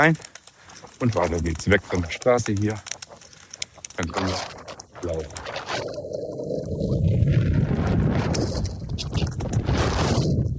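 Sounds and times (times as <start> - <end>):
speech: 0.0 - 0.3, 1.0 - 2.9, 4.0 - 5.9
heavy wind buffeting the microphone outdoors: 4.6 - 10.5.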